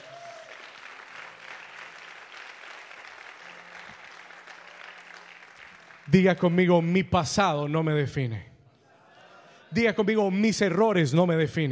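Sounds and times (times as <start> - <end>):
audience applause: 0.0 - 6.6
speech: 6.1 - 8.5, 9.7 - 11.7.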